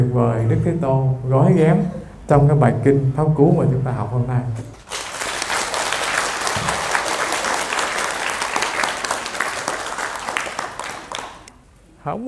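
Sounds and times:
speech: 0.0 - 4.8, 12.0 - 12.2
audience applause at a Buddhist Dharma talk: 4.8 - 11.5.

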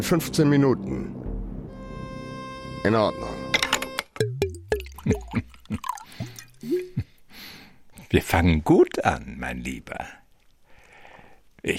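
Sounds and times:
speech: 0.0 - 1.2, 2.8 - 3.5, 8.1 - 10.2
drink pouring from a bottle into a glass: 4.7 - 7.0.

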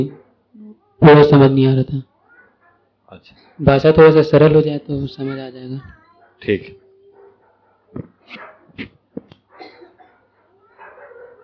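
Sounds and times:
speech: 0.0 - 0.2, 1.0 - 2.1, 3.1 - 6.8
dogs barking: 0.0 - 0.5, 2.2 - 4.1, 6.1 - 11.4.

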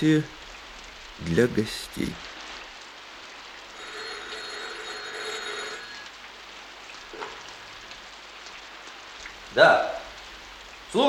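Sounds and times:
speech: 0.0 - 0.4, 1.2 - 2.3, 9.6 - 10.0
heavy rain downpour: 0.0 - 11.0
high-pitched electronic ringing: 3.8 - 6.1.

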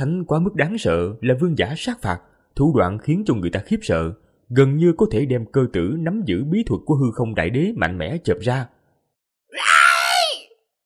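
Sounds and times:
speech: 0.0 - 8.8
long scream: 9.5 - 10.6.

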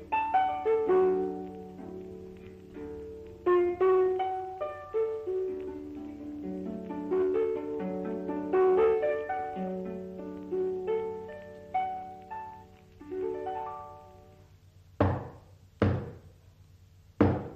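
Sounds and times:
music in an Arabic radio drama: 0.0 - 15.3
knocking on a door: 15.0 - 16.3, 17.2 - 17.5.

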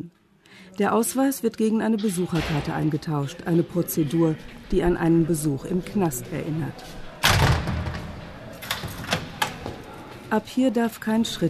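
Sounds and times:
speech: 0.0 - 7.0, 10.3 - 11.4
heavy door opening thud in a secure forensic psychiatry facility: 7.2 - 9.7.

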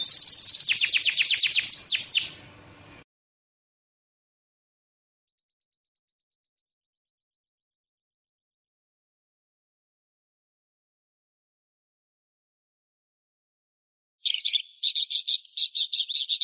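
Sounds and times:
songbirds singing with trills and chattering: 0.0 - 2.4, 14.2 - 16.4.

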